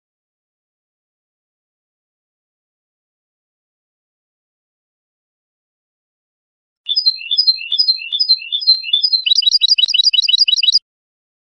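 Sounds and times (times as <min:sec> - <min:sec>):
European goldfinch song: 0:06.9 - 0:10.8.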